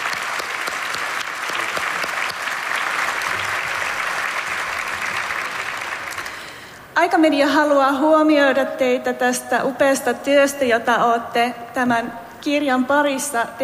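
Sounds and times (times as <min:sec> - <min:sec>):
resounding audience applause: 0:00.0 - 0:06.6
speech: 0:07.0 - 0:13.6.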